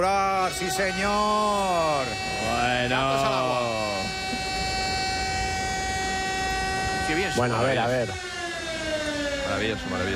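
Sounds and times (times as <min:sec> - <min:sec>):
speech: 0:00.0 - 0:04.1, 0:07.1 - 0:08.3, 0:09.5 - 0:10.1
alarm siren: 0:00.0 - 0:10.1.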